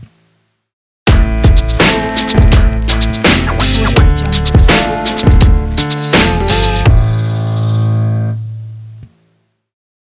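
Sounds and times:
night lowrider logo jingle: 1.1 - 8.4.

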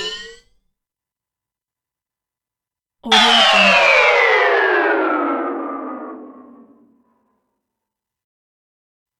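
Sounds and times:
reversed sound effects: 3.1 - 6.7.

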